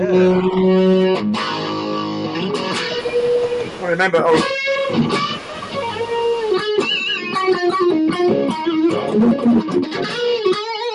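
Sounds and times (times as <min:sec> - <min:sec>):
speech: 0:00.0 - 0:01.6, 0:03.9 - 0:05.4, 0:08.6 - 0:10.4
distorted electric guitar playing, slightly out of tune: 0:00.0 - 0:10.9.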